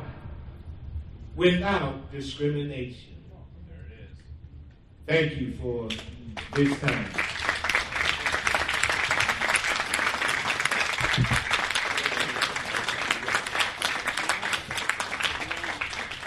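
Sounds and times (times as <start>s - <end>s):
speech: 1.4s - 3.2s, 5.1s - 7.3s
audience applause: 5.9s - 16.2s.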